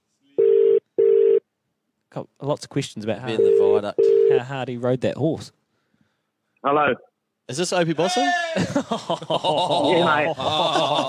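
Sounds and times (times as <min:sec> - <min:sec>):
ringback tones of an outgoing phone call: 0:00.4 - 0:01.4, 0:03.4 - 0:04.4
speech: 0:02.1 - 0:05.6, 0:06.6 - 0:11.0
laughter: 0:08.0 - 0:11.0.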